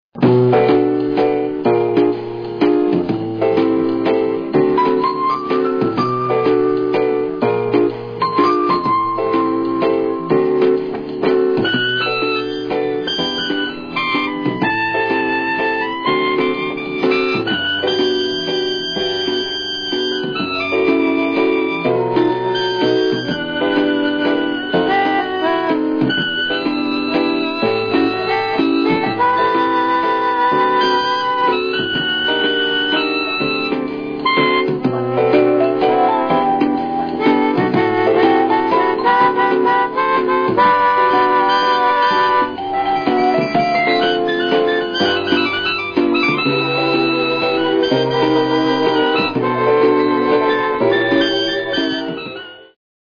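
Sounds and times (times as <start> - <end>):
rhythmic beat: 0.2 - 52.8.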